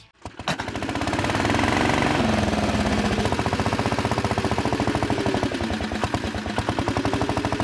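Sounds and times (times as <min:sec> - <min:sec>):
BSA motorcycle engine being started and idling: 0:00.0 - 0:07.6.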